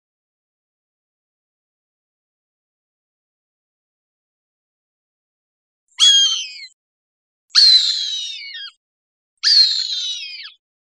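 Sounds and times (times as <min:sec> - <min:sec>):
Cooper's hawk screaming: 0:06.0 - 0:06.7, 0:07.6 - 0:08.7, 0:09.4 - 0:10.6.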